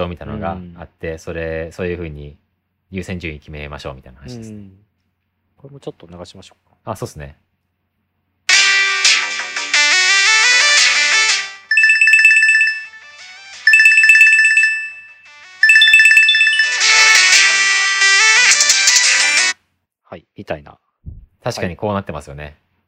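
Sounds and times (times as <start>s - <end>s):
speech: 0.0s - 4.8s, 5.6s - 7.4s, 20.1s - 22.6s
music: 8.5s - 19.6s
loud electronic phone ringtone: 11.7s - 19.5s.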